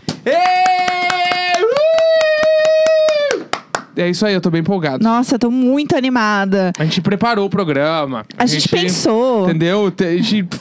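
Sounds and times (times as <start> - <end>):
hand clapping: 0.0 - 4.0
speech: 4.0 - 10.5.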